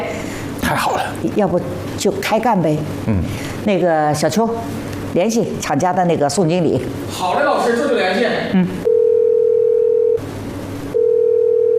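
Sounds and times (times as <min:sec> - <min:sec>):
speech: 0:00.7 - 0:08.9
telephone ringing tone, call unanswered: 0:08.9 - 0:10.2, 0:10.9 - 0:11.7.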